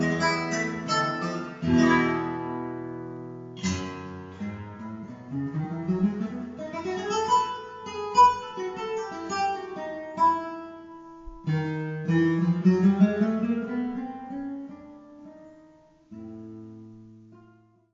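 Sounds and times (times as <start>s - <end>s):
guitar concert: 0.0s - 17.7s.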